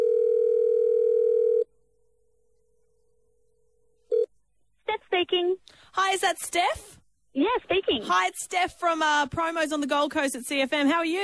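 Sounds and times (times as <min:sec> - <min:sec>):
telephone ringback tone of an outgoing call: 0:00.0 - 0:01.7
speech: 0:05.2 - 0:11.2.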